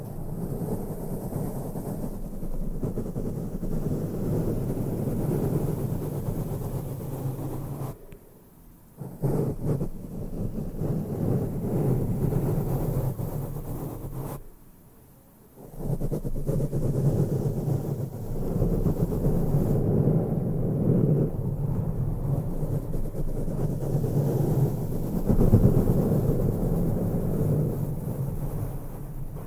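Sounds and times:
intense microphone brushing: 0:00.0 - 0:08.0, 0:09.0 - 0:14.4, 0:15.6 - 0:29.4.

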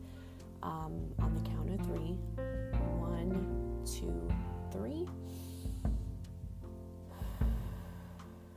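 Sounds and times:
speech: 0:00.6 - 0:02.7, 0:03.3 - 0:05.5
deep breath drawn in and released during a guided relaxation exercise: 0:05.2 - 0:06.0, 0:07.1 - 0:08.5.

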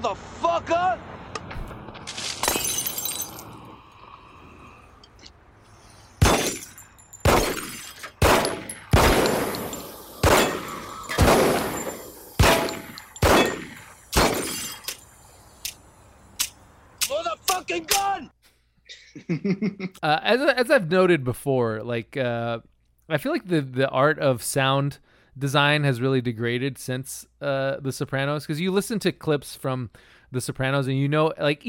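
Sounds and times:
speech: 0:00.0 - 0:01.2, 0:17.7 - 0:18.4, 0:19.2 - 0:31.6
gunshots from a handgun in a TV scene: 0:06.2 - 0:06.6, 0:07.2 - 0:14.7
laughter: 0:19.0 - 0:20.0.

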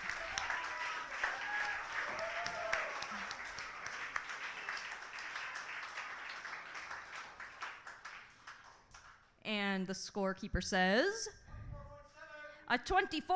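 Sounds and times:
audience applause: 0:00.0 - 0:09.2
speech: 0:09.8 - 0:11.4, 0:12.7 - 0:13.3.

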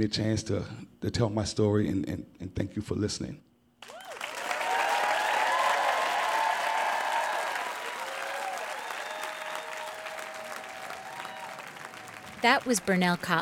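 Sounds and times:
speech: 0:00.0 - 0:03.5, 0:12.4 - 0:13.4
audience in New Orleans giving a standing ovation: 0:03.8 - 0:13.4.

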